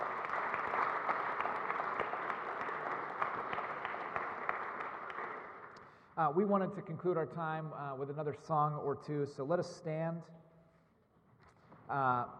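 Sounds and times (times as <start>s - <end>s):
audience applause: 0.0s - 5.8s
speech: 6.2s - 10.4s, 11.9s - 12.3s.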